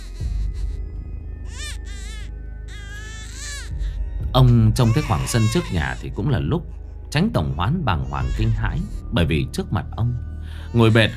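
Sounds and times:
baby wailing: 0.0s - 4.0s, 4.8s - 9.2s, 10.5s - 11.1s
low eerie lullaby: 0.0s - 11.1s
speech: 4.4s - 11.1s.

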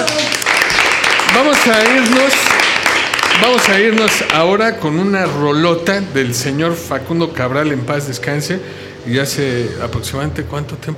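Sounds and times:
radio studio audience applauding departing guests: 0.0s - 4.6s
speech: 1.4s - 2.6s, 3.4s - 10.9s.

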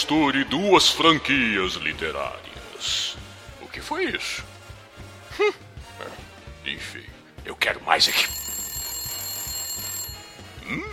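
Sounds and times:
speech: 0.0s - 3.0s, 3.7s - 4.5s, 5.4s - 8.4s, 10.7s - 10.9s
telephone ringing with electronic trill: 8.0s - 10.9s.

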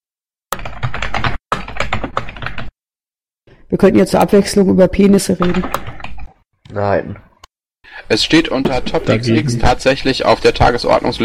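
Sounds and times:
typing on a computer keyboard to post on Twitter: 0.6s - 2.7s, 5.4s - 6.3s
speech: 3.7s - 6.0s, 6.7s - 7.3s, 7.9s - 11.2s.

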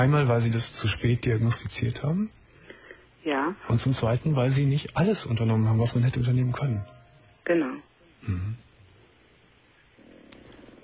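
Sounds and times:
speech: 0.0s - 2.4s, 3.2s - 8.6s
boxer dogs growling and purring: 10.0s - 10.8s.

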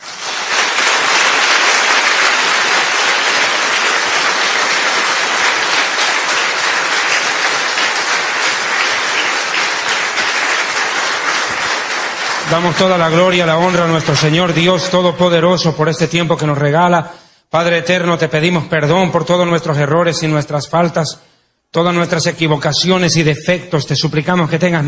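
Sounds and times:
audience applause: 0.0s - 14.8s
speech: 12.5s - 24.8s.

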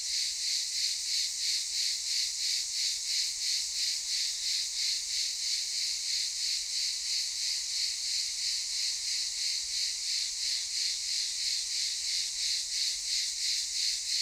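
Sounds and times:
cicadas chorus in daytime at a camp in Çıralı, Kemer, Antalya, Turkey: 0.0s - 14.1s.

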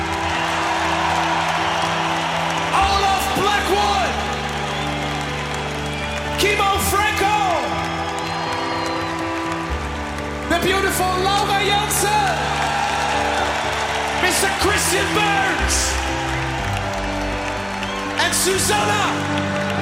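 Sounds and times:
high wavering screams and whoops of a concert crowd: 0.0s - 9.8s, 12.3s - 19.7s
concert crowd roaring and cheering: 0.0s - 19.7s
speech: 10.6s - 12.0s, 14.6s - 16.2s, 18.4s - 19.7s.

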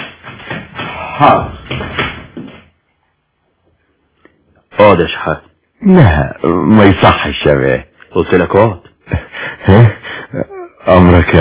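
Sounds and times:
door being closed: 0.0s - 2.6s
speech: 1.2s - 2.1s, 4.9s - 11.3s.

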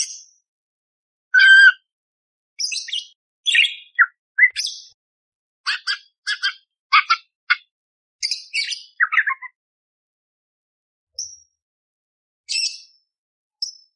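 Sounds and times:
budgerigar warbling song: 1.3s - 1.8s, 3.5s - 4.9s, 5.7s - 7.7s, 8.5s - 9.5s.

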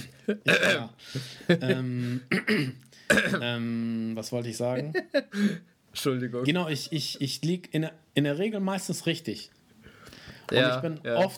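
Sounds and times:
speech: 0.3s - 9.6s, 10.5s - 11.3s
person clearing throat: 0.4s - 1.0s, 2.3s - 3.6s.

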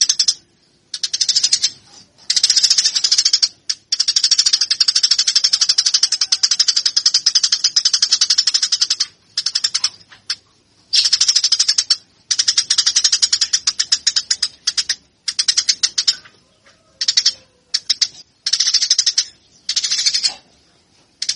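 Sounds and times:
Eurasian tree sparrow chirping: 0.0s - 20.6s, 21.2s - 21.3s.

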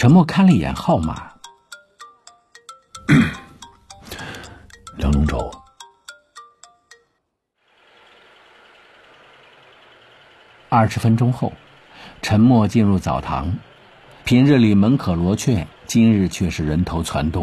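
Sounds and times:
speech: 0.0s - 1.3s, 10.7s - 13.7s, 14.3s - 17.4s
mobile phone ringing: 1.4s - 7.2s.

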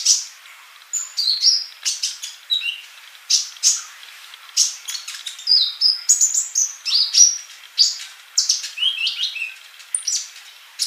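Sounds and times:
bird song: 0.0s - 10.8s.

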